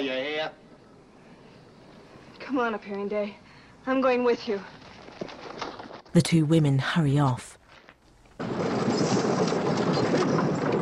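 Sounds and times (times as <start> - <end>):
speech: 0.0 - 0.7, 2.4 - 4.8, 6.1 - 7.6
wagons rolling: 8.4 - 10.8.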